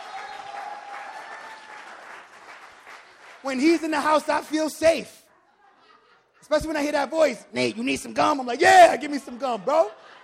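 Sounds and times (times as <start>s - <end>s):
audience clapping: 0.0s - 4.8s
speech: 3.4s - 5.2s, 6.5s - 10.2s
laughter: 5.4s - 10.2s.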